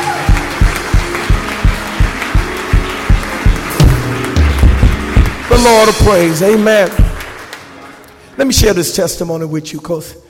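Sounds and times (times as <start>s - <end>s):
group clapping hands in a rhythmic beat: 0.0s - 8.2s
sustained low musical tone: 0.3s - 7.2s
speech: 5.6s - 7.0s, 8.4s - 10.2s.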